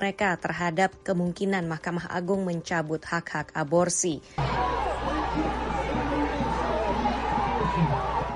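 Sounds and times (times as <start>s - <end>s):
speech: 0.0s - 5.7s
large protest crowd shouting together: 4.4s - 8.3s.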